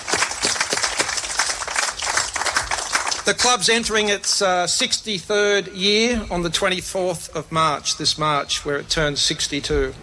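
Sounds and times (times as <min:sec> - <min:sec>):
applause: 0:00.0 - 0:04.4
speech: 0:03.2 - 0:10.0.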